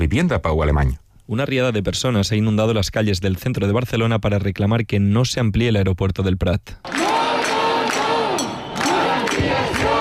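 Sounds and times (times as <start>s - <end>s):
speech: 0.0s - 7.0s
protest crowd chanting a slogan: 6.8s - 10.0s.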